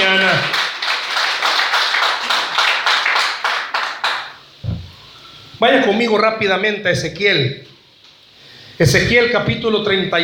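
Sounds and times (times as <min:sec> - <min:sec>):
audience applause: 0:00.0 - 0:04.4
low thump: 0:04.6 - 0:05.0
speech: 0:05.6 - 0:07.7, 0:08.8 - 0:10.2.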